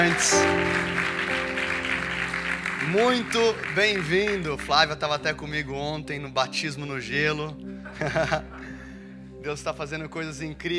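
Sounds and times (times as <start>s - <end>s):
speech: 0.0s - 1.0s, 2.8s - 8.7s, 9.4s - 10.7s
large crowd applause: 0.0s - 4.7s
sustained keyboard chords: 0.0s - 10.7s
laughter: 7.9s - 8.6s.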